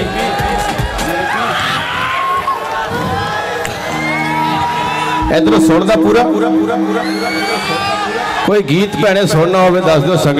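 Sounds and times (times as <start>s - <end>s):
audience cheering and whooping at a live Punjabi singing event: 1.1s - 8.6s
speech: 5.3s - 10.3s.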